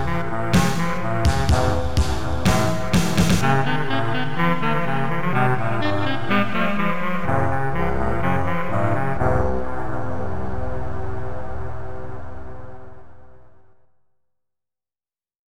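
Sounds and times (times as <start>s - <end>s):
saxophone: 0.0s - 11.9s.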